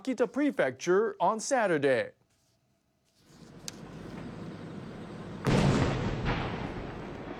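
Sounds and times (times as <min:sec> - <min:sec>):
speech: 0:00.0 - 0:02.2
fireworks exploding over Daisen City in Akita Prefecture, Japan: 0:05.4 - 0:07.3.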